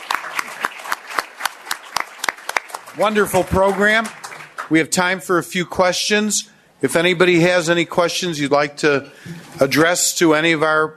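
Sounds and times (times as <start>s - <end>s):
audience round of applause: 0.0s - 4.7s
sharp evenly spaced claps: 0.0s - 4.7s
speech: 3.0s - 10.9s.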